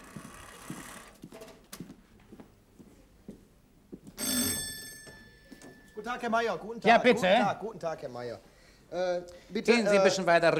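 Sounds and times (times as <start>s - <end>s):
doorbell ringing with a metallic buzz: 4.2s - 6.4s
speech: 6.0s - 10.5s.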